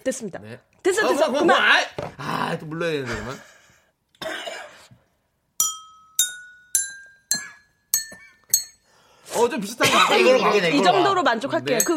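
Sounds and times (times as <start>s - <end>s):
speech: 0.0s - 3.5s, 9.4s - 11.9s
rough cough-like burst: 4.2s - 4.9s
tapping tuned drinking glasses: 5.6s - 8.9s.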